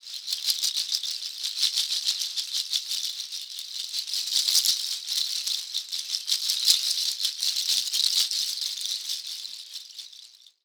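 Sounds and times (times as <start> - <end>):
Synclavier shaker: 0.0 - 10.6.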